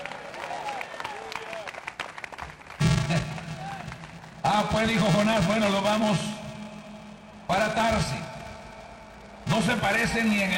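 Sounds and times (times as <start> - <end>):
applause: 0.0 - 4.7
speech: 4.6 - 6.3, 7.5 - 8.3, 9.6 - 10.5.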